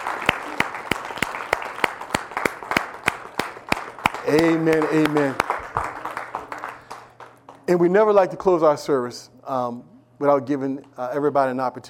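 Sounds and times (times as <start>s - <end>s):
scattered applause: 0.0s - 7.7s
audience hand clapping in praise: 0.0s - 7.8s
speech: 4.3s - 5.4s, 7.7s - 11.8s.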